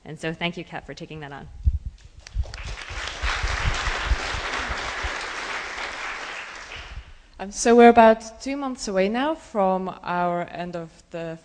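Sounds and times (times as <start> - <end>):
speech: 0.1 - 1.7, 7.4 - 11.4
group applause: 2.3 - 7.1.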